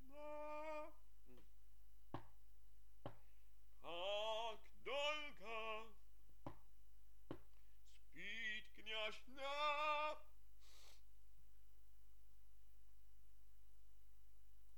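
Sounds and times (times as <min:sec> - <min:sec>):
tenor singing: 0:00.0 - 0:01.4, 0:03.8 - 0:06.0, 0:07.8 - 0:10.3.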